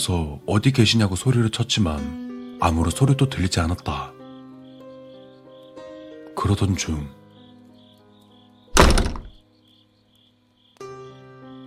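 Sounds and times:
speech: 0.0s - 4.2s, 6.4s - 7.2s
toilet door slamming shut hard: 8.8s - 9.4s.

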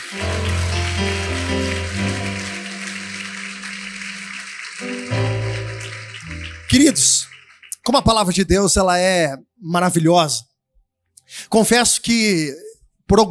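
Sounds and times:
sustained organ or keyboard chords: 0.0s - 8.2s
audience applause: 0.0s - 8.4s
speech: 6.7s - 7.3s, 7.9s - 10.5s, 11.3s - 13.2s.

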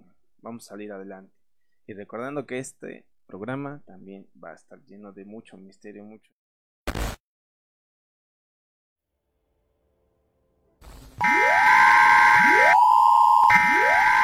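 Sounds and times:
speech: 0.4s - 6.4s, 11.2s - 11.4s
emergency alert alarm tone: 11.2s - 14.2s.

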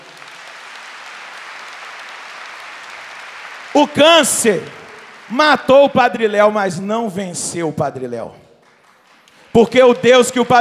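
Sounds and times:
audience applause: 0.0s - 6.3s, 8.6s - 10.5s
speech: 3.8s - 8.4s, 9.6s - 10.5s.

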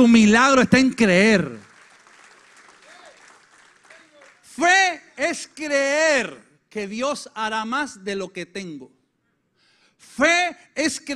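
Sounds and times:
speech: 0.0s - 1.6s, 4.6s - 9.0s, 10.0s - 11.1s
audience applause: 1.4s - 4.5s.

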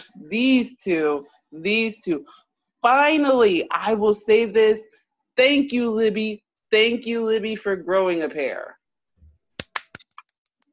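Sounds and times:
speech: 0.0s - 8.8s
hand clapping: 9.6s - 10.3s.

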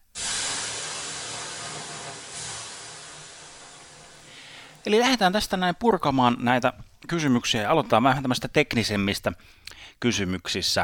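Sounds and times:
water thrown on hot sauna stones hissing: 0.0s - 5.1s
speech: 4.9s - 10.8s.

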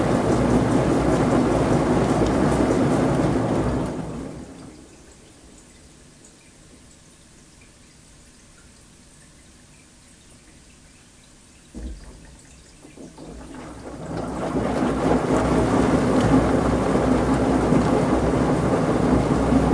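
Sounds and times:
laundry churning in a washing machine: 0.0s - 19.7s
soft knock: 11.7s - 12.4s.

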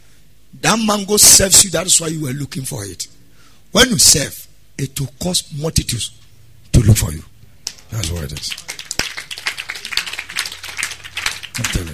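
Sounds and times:
speech: 0.6s - 8.8s, 11.6s - 11.9s
church congregation rhythmic clapping: 7.6s - 11.9s.

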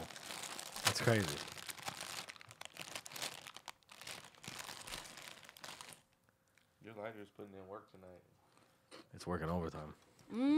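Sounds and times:
hand rummaging in a crinkly plastic bag of cookies and cream Rice Krispies cereal: 0.0s - 6.1s
speech: 1.0s - 1.5s, 7.1s - 8.4s, 9.1s - 10.5s.

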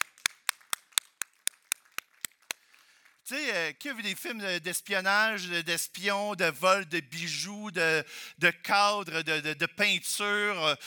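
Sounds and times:
audience clapping in unison: 0.0s - 3.2s
speech: 3.3s - 10.8s.

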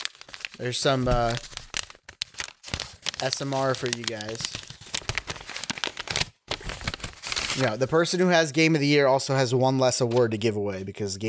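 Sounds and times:
paper envelope being torn open and crinkled: 0.0s - 8.0s
speech: 0.6s - 1.6s, 3.2s - 4.6s, 7.6s - 11.2s.

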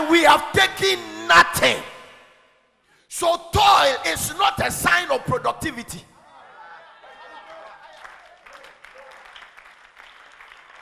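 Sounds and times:
speech: 0.1s - 1.9s, 3.1s - 6.1s
laughter: 6.2s - 9.2s
audience clapping: 7.1s - 10.8s.

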